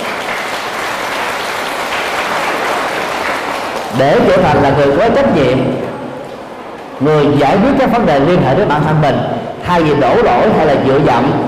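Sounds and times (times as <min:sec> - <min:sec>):
children giving a big round of applause: 0:00.0 - 0:04.4
speech: 0:04.0 - 0:05.9, 0:07.0 - 0:11.4.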